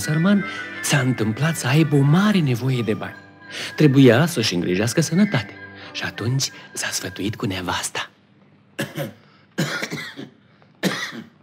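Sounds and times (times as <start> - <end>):
speech: 0.0 - 8.1, 8.8 - 9.7
man coughing: 8.8 - 11.4.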